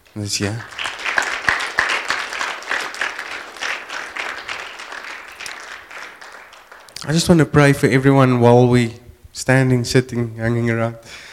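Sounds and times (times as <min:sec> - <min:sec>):
audience hand clapping: 0:00.1 - 0:07.8
speech: 0:00.2 - 0:00.8, 0:07.1 - 0:11.2.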